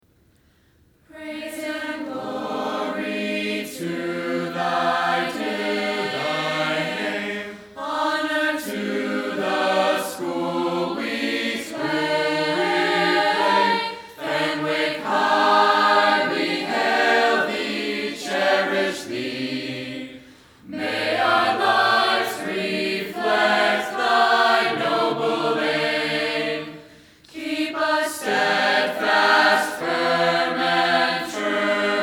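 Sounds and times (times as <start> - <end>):
alma mater song vocal: 1.1 - 32.0.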